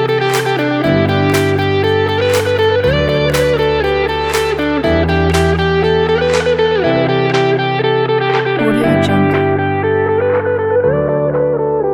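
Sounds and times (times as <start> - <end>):
upbeat corporate music: 0.0 - 11.8.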